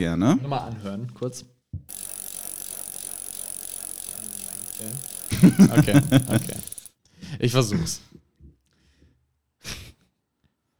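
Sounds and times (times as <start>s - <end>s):
speech: 0.0s - 2.0s, 4.8s - 6.7s, 7.3s - 8.1s
bicycle freewheel sprocket ticking: 1.9s - 6.9s.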